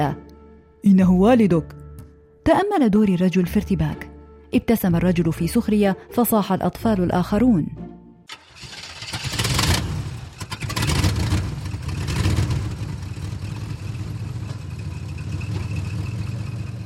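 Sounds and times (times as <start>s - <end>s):
speech: 0.0s - 0.2s, 0.8s - 1.8s, 2.4s - 8.7s
truck engine starting and driving away: 8.3s - 16.8s.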